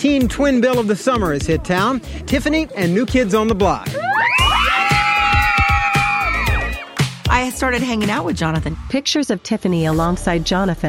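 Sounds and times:
speech: 0.0 - 4.4, 7.4 - 10.8
large concert crowd cheering: 3.9 - 7.1
high-pitched screams and shrieks: 4.0 - 7.0.

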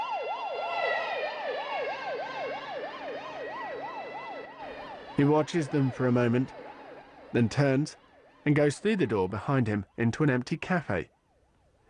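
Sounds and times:
sirens of a police car and an ambulance speeding past: 0.0 - 11.8
speech: 5.2 - 6.6, 7.3 - 11.1.

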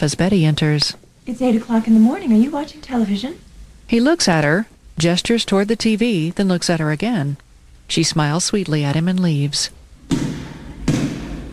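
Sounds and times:
speech: 0.0 - 10.4
basketball being dribbled: 10.0 - 11.5.

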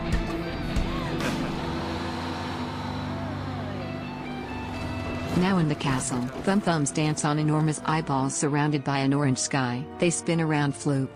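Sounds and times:
tram rumbling as it drives off: 0.1 - 8.7
speech: 5.4 - 11.1.

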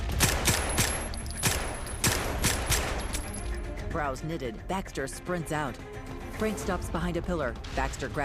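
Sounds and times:
gunshots in a film shootout: 0.1 - 3.2
speech: 3.9 - 8.2.

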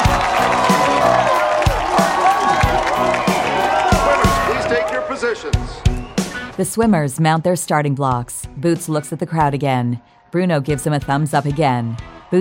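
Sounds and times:
York Academy and McDonald Hall fans cheering: 0.0 - 6.8, 11.1 - 12.3
speech: 6.6 - 12.3.

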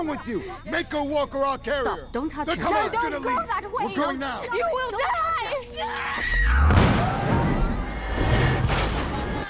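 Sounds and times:
speech: 0.0 - 7.3
massive explosion in a station market: 6.4 - 9.4.

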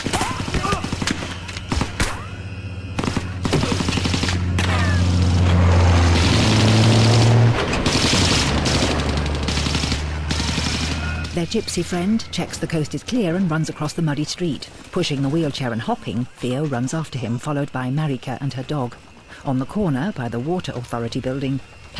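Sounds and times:
gunfire during a street battle between refugees and the army: 0.0 - 11.7
armed vehicles speeding past through a muddy street: 4.6 - 7.8
speech: 11.4 - 21.9.

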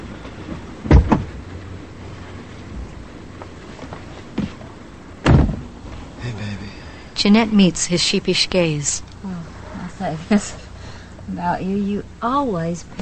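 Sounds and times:
low steady rumble: 0.0 - 12.9
car door closing as someone gets in: 0.4 - 1.5, 3.8 - 6.0
speech: 7.2 - 9.4, 10.0 - 10.6, 11.3 - 12.9.

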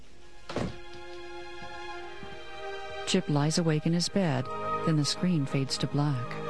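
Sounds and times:
door shutting: 0.5 - 1.0
speech: 3.1 - 6.4.

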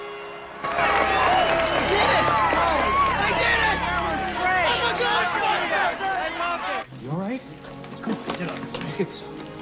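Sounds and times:
crowd cheering wildly: 0.0 - 6.9
excited shouting voices: 0.4 - 6.9
speech: 9.0 - 9.4.

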